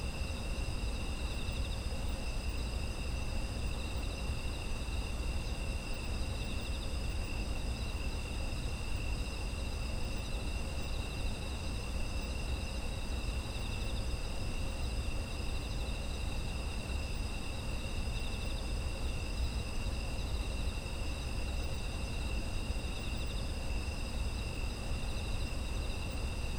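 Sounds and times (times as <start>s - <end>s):
insect chorus trilling: 0.0s - 26.5s.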